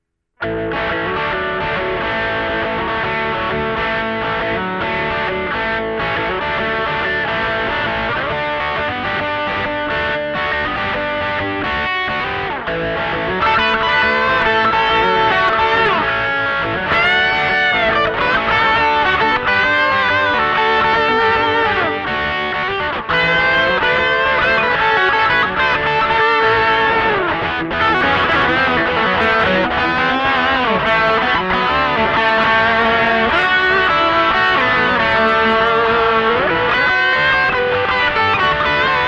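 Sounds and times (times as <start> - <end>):
rock music: 0.4 - 39.0.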